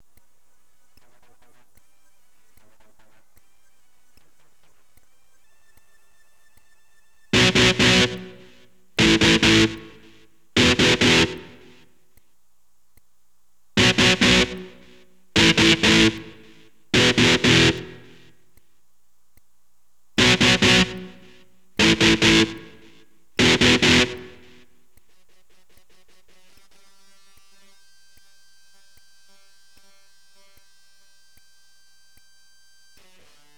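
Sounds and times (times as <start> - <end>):
electric guitar power chord: 7.4 - 11.9, 13.8 - 18.3, 20.2 - 24.7.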